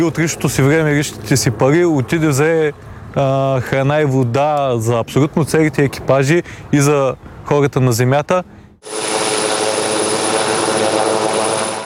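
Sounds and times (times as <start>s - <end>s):
helicopter flying: 0.0s - 3.2s, 8.8s - 11.8s
speech: 0.0s - 9.0s.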